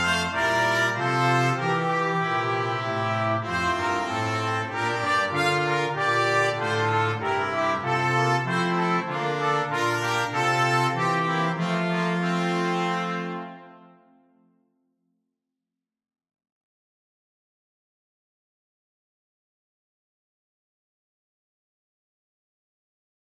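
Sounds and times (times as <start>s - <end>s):
brass quintet: 0.0s - 14.5s.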